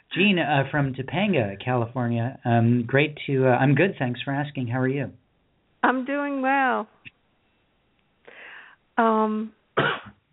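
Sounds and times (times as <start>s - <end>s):
speech: 0.2s - 5.2s, 5.8s - 7.0s, 9.0s - 10.1s
sneeze: 9.8s - 10.2s.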